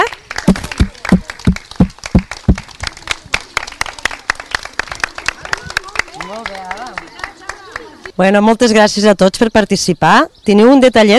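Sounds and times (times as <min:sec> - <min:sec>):
group applauding a prize winner: 0:00.0 - 0:08.2
speech: 0:08.2 - 0:11.1.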